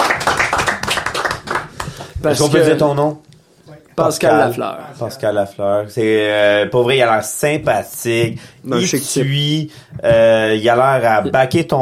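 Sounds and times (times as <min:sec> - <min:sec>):
group applauding: 0:00.0 - 0:02.5
speech: 0:02.2 - 0:03.3, 0:04.0 - 0:11.8.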